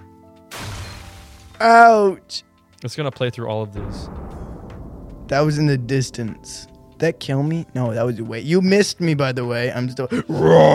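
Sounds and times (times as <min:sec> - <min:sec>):
dirt explosion sound effect: 0:00.5 - 0:02.0, 0:03.8 - 0:08.4
speech: 0:01.6 - 0:04.2, 0:05.3 - 0:10.7.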